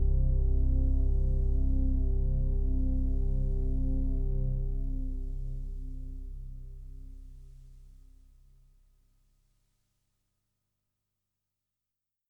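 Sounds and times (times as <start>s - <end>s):
Juno-60 synthesizer pad: 0.0s - 7.6s.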